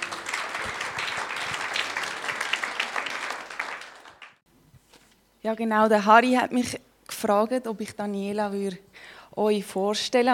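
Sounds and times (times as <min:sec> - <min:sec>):
audience applause: 0:00.0 - 0:04.4
speech: 0:05.4 - 0:10.3.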